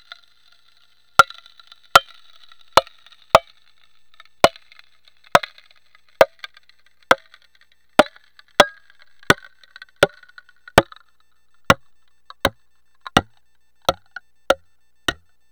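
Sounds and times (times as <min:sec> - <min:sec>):
cracking: 0:01.2 - 0:15.3.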